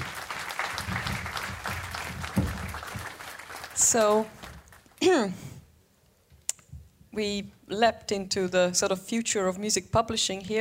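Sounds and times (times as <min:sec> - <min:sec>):
audience applause: 0:00.0 - 0:05.0
speech: 0:03.9 - 0:04.4, 0:05.0 - 0:05.5, 0:07.2 - 0:10.6.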